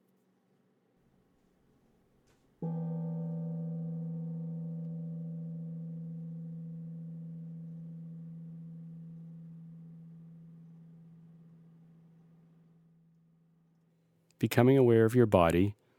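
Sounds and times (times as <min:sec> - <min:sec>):
meditation gong ringing: 0:02.6 - 0:13.0
speech: 0:14.4 - 0:15.8.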